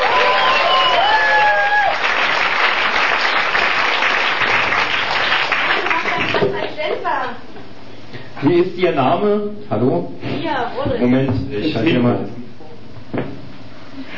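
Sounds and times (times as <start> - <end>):
audience applause: 0.0 - 6.6
whistles: 0.2 - 1.3
speech: 8.5 - 12.4.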